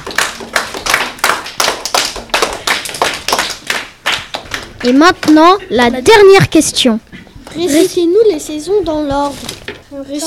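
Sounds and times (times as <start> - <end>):
rhythmic applause: 0.0 - 5.5
speech: 4.8 - 7.0, 7.6 - 10.2.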